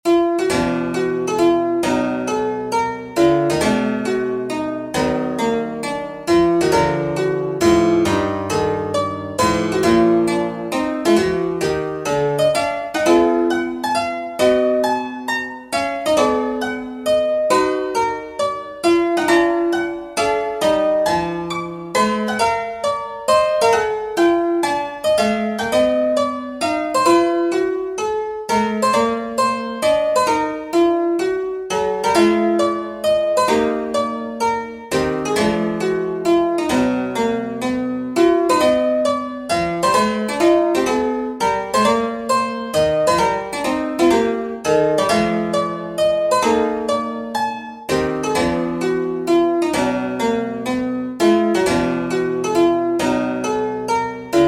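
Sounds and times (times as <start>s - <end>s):
Diasem Dorian 21edo microtonal scale melody: 0.0s - 54.4s.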